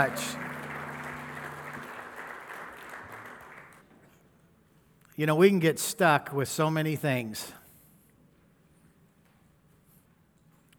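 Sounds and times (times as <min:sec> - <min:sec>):
speech: 0:00.0 - 0:00.4, 0:05.2 - 0:07.6
audience clapping hands: 0:00.0 - 0:04.3.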